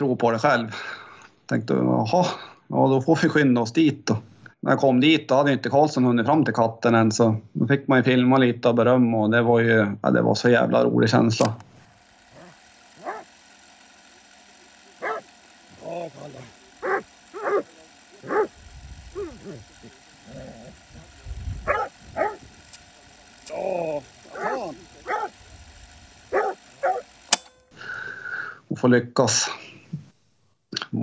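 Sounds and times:
speech: 0.0s - 11.7s, 28.8s - 29.6s
American Foxhound baying during hunt: 12.3s - 13.3s, 15.0s - 15.3s, 16.1s - 21.0s, 21.6s - 22.5s, 24.3s - 25.4s, 26.3s - 27.1s.

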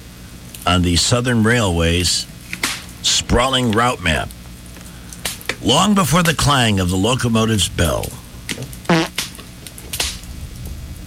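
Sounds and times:
low hiss: 0.0s - 11.0s
speech: 0.7s - 2.4s, 3.0s - 4.4s, 5.6s - 8.8s
fireplace popping and crackling: 2.3s - 11.0s
buzzy rasping burst: 5.7s - 9.6s.

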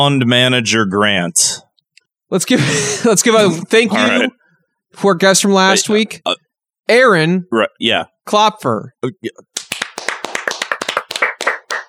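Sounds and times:
speech: 0.0s - 1.6s, 2.3s - 9.5s
audience clapping: 9.6s - 11.8s.

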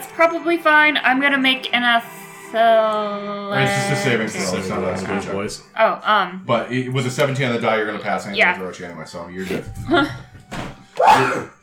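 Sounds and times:
speech: 0.1s - 10.2s
person sneezing: 11.0s - 11.6s.

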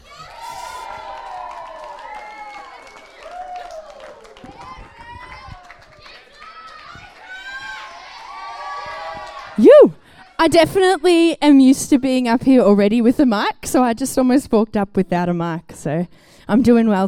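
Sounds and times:
audience whoops and high shouts: 0.0s - 10.0s
church event audience clapping to welcome a speaker: 0.3s - 9.6s
speech: 9.6s - 17.0s.

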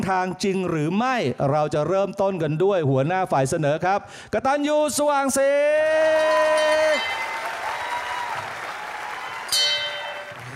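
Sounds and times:
speech: 0.1s - 7.3s
applause: 6.0s - 10.5s
audience screaming: 6.0s - 10.5s.

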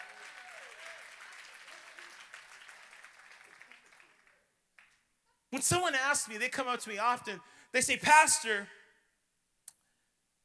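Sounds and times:
audience clapping: 0.0s - 5.1s
speech: 5.5s - 8.8s.

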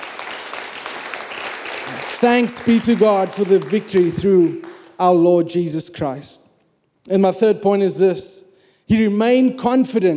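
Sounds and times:
audience applause: 0.0s - 5.0s
speech: 1.9s - 6.4s, 7.1s - 10.1s.

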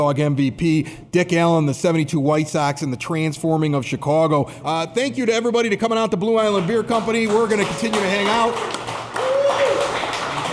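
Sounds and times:
speech: 0.0s - 8.9s
audience applause: 7.0s - 10.5s.

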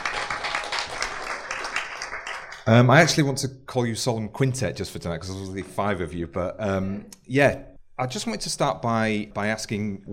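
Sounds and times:
audience applause: 0.0s - 2.6s
speech: 2.7s - 10.1s.

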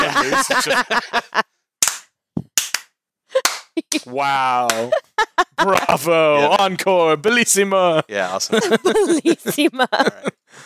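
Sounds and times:
laughter: 0.0s - 1.5s, 4.7s - 6.8s, 7.9s - 10.5s
speech: 0.2s - 1.5s, 3.3s - 10.6s
slow hand clapping: 1.8s - 3.7s, 5.8s - 6.6s.

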